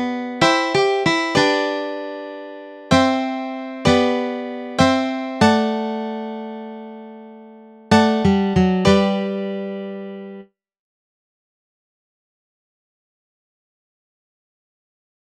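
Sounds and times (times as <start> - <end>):
guitar melody chords: 0.0 - 10.5.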